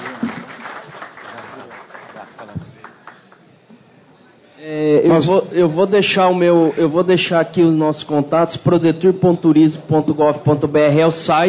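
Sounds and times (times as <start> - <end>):
audience applause: 0.0 - 3.4
speech: 4.6 - 11.4.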